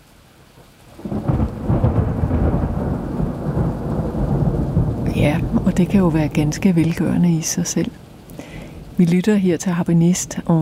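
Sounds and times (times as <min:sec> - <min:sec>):
recorded thunderclap: 0:01.0 - 0:09.0
speech: 0:05.2 - 0:08.0, 0:09.0 - 0:10.5.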